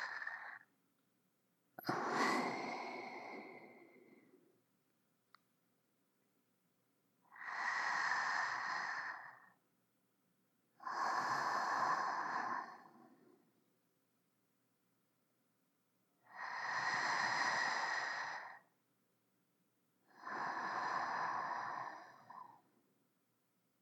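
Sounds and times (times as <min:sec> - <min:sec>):
sleeping breath: 0:00.0 - 0:00.7, 0:01.8 - 0:04.4, 0:07.3 - 0:09.6, 0:10.8 - 0:13.5, 0:16.3 - 0:18.7, 0:20.1 - 0:22.7.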